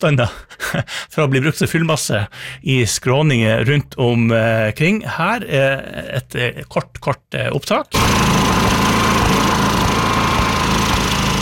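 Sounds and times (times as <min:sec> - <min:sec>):
speech: 0:00.0 - 0:08.4
generator engine running: 0:08.0 - 0:11.4.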